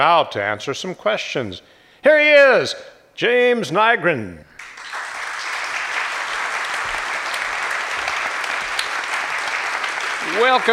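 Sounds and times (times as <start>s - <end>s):
speech: 0.0s - 4.5s, 10.4s - 10.7s
studio audience applause: 4.6s - 10.7s.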